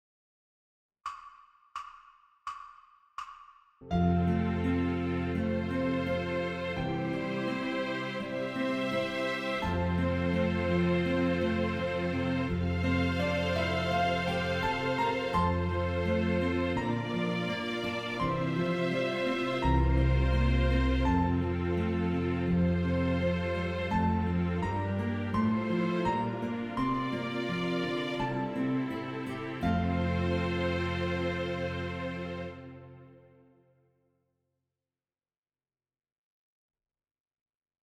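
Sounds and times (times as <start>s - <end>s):
pentascale in concert F: 3.9s - 32.6s.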